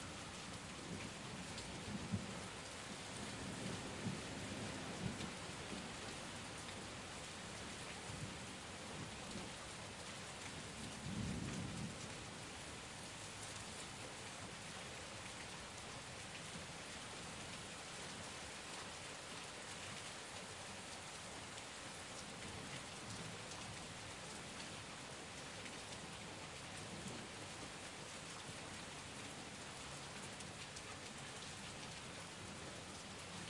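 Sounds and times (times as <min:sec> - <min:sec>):
heavy rain storm heard from under a balcony in daytime: 0:00.0 - 0:33.4.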